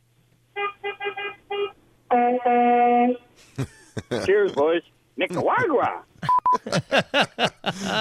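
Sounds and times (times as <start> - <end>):
two-tone truck horn honk: 0.6 - 3.2
speech: 2.2 - 7.9
laughter: 3.5 - 4.6, 5.3 - 7.9.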